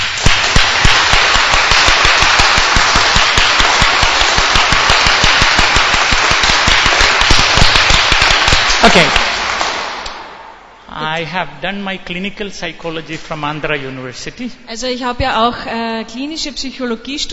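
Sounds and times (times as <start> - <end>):
audience clapping loudly: 0.0 - 10.6
speech: 8.9 - 9.3, 11.2 - 17.3.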